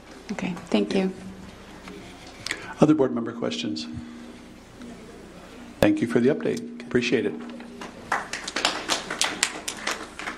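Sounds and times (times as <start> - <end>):
speech: 0.3 - 1.3, 2.8 - 4.2, 5.8 - 7.6
small group applauding at a board meeting: 7.5 - 10.3.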